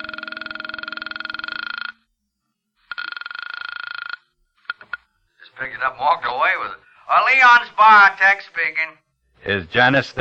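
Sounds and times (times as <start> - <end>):
telephone ringing: 0.0 - 2.1, 2.8 - 8.2
speech: 5.6 - 10.1.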